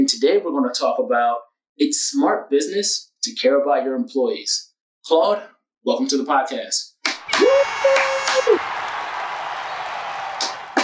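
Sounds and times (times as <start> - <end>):
speech: 0.0 - 8.8
crowd cheering: 7.1 - 10.8
sustained whistle: 7.2 - 10.8.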